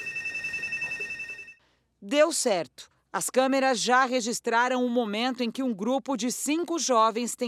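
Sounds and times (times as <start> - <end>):
building security alarm siren: 0.0 - 1.6
speech: 2.1 - 7.4.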